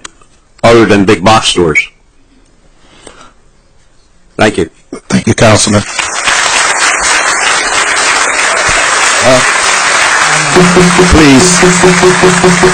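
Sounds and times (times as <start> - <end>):
speech: 0.7 - 1.9, 4.4 - 6.0, 9.2 - 9.6, 10.6 - 12.7
applause in council chamber: 5.6 - 12.7.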